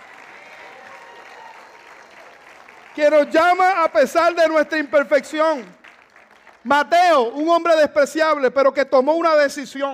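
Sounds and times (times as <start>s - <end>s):
loud crowd applause: 0.0s - 6.9s
speech: 3.0s - 5.8s, 6.6s - 9.9s.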